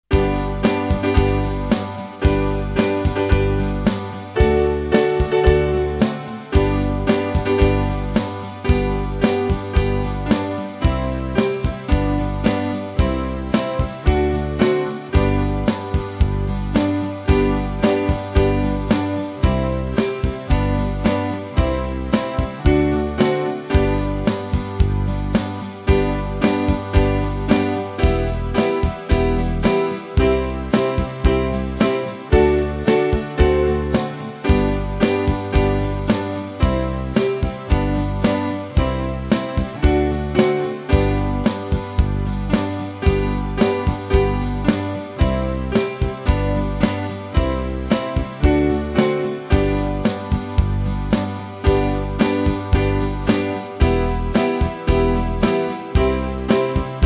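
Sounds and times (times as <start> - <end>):
instrumental music: 0.0 - 57.0.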